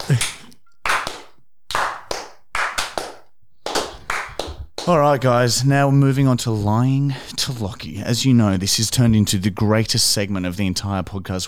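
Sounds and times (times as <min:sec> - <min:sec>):
light clapping: 0:00.0 - 0:05.0
speech: 0:00.1 - 0:00.4, 0:04.8 - 0:11.4.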